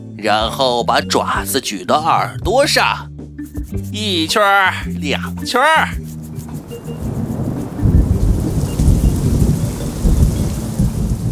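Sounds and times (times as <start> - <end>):
speech: 0.2 - 3.1, 3.9 - 6.0
rain: 7.1 - 11.3
thunder: 7.9 - 11.3.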